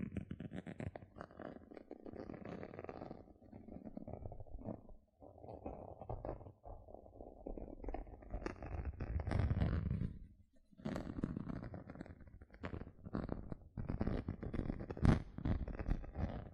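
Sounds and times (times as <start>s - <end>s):
gentle soft scratching strokes: 0.0s - 16.5s.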